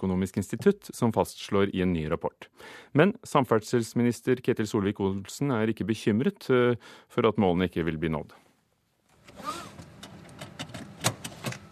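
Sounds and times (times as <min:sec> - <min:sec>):
speech: 0:00.0 - 0:08.4, 0:09.4 - 0:09.8
car seatbelt being fastened: 0:09.1 - 0:11.7.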